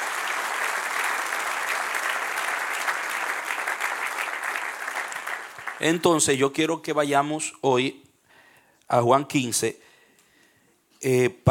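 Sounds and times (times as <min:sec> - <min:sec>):
audience applause: 0:00.0 - 0:06.2
speech: 0:05.8 - 0:08.0, 0:08.9 - 0:09.9, 0:11.0 - 0:11.4.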